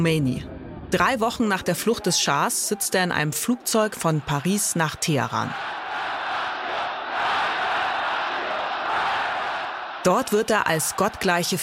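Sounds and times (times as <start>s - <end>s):
speech: 0.0s - 5.8s, 10.0s - 11.6s
huge street crowd cheering: 3.5s - 11.6s.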